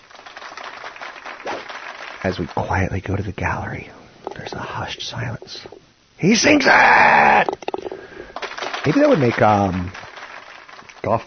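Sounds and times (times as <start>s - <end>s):
golf clap from several people: 0.0s - 2.5s, 8.3s - 11.2s
speech: 2.2s - 7.7s, 8.8s - 10.0s, 11.0s - 11.2s.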